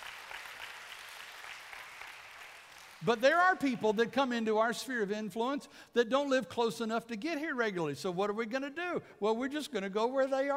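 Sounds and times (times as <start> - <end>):
crowd applause: 0.0 - 3.1
speech: 3.0 - 10.5.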